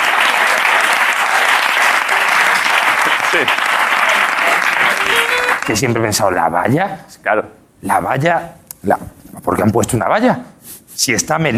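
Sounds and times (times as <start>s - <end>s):
audience applause: 0.0s - 5.9s
speech: 3.3s - 3.6s, 5.7s - 11.5s.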